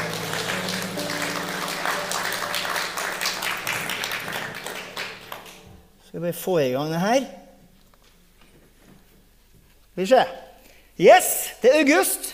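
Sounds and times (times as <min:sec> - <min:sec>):
audience applauding: 0:00.0 - 0:05.8
speech: 0:06.2 - 0:07.4, 0:10.0 - 0:10.4, 0:11.0 - 0:12.3.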